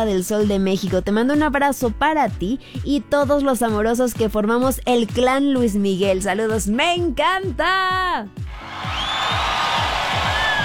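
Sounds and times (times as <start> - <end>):
speech: 0.0 - 8.4
crowd cheering and applause: 8.5 - 10.6
whistle: 8.9 - 10.6.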